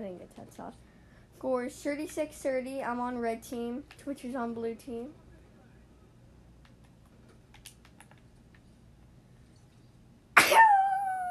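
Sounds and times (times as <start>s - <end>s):
speech: 0.0s - 5.2s
sneeze: 10.4s - 11.0s.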